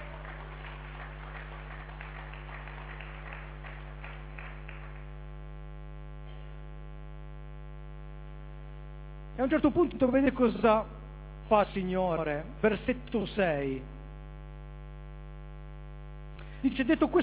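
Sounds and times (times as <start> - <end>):
audience applause: 0.0 - 5.2
low electrical hum: 0.0 - 17.2
speech: 9.4 - 14.0, 16.6 - 17.2.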